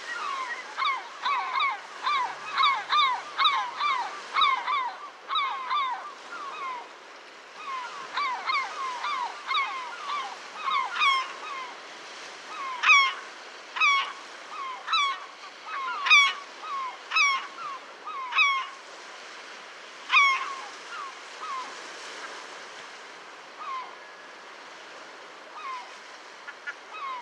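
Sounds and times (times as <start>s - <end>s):
herring gull calling: 0.0s - 6.9s, 7.6s - 11.8s, 12.5s - 18.8s, 20.1s - 21.8s.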